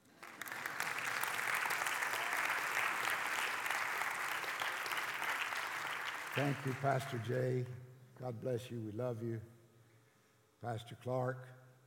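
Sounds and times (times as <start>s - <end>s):
crowd applauding: 0.0s - 7.3s
speech: 6.4s - 9.6s, 10.6s - 11.6s.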